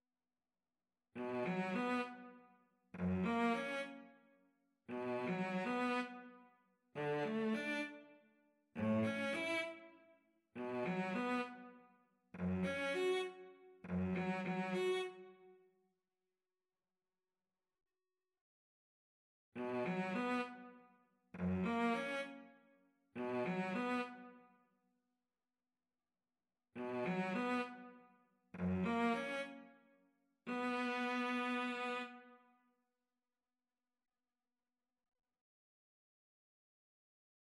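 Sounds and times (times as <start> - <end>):
violin and cello duet: 1.2 - 2.2, 3.0 - 4.0, 4.9 - 6.3, 7.0 - 8.0, 8.8 - 9.8, 10.6 - 11.6, 12.4 - 15.2, 19.6 - 20.6, 21.4 - 22.4, 23.2 - 24.2, 26.8 - 27.8, 28.6 - 29.6, 30.5 - 32.2.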